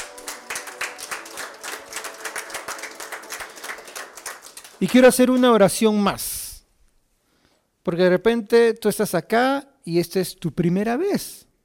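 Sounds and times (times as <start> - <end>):
audience applause: 0.0 - 5.4
speech: 4.8 - 6.3, 7.9 - 11.5.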